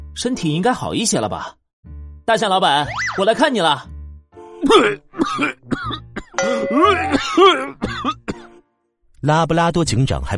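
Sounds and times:
speech: 0:00.2 - 0:01.6, 0:02.3 - 0:03.9, 0:04.6 - 0:08.2, 0:09.2 - 0:10.3
repeated coughing: 0:04.6 - 0:08.6.

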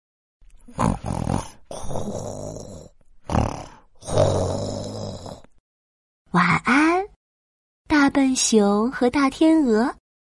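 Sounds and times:
light snoring: 0:00.6 - 0:05.6
speech: 0:00.7 - 0:01.1, 0:08.2 - 0:10.0.

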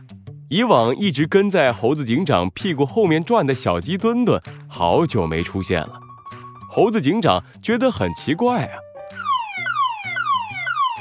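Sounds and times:
speech: 0:00.5 - 0:06.0, 0:06.8 - 0:08.8
police car siren wailing: 0:09.1 - 0:10.9.

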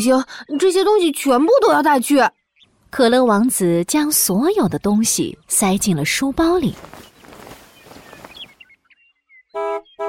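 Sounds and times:
speech: 0:00.0 - 0:07.1
winged magic school bus horn honking: 0:09.6 - 0:10.0.

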